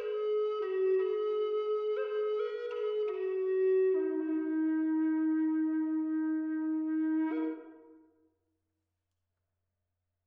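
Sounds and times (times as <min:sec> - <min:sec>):
Eastern Red Cedar instrument tuned to E at 432 Hz: 0:00.0 - 0:08.1.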